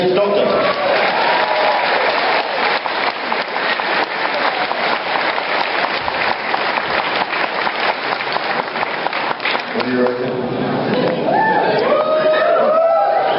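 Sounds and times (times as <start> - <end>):
audience applause: 0.2 - 13.2.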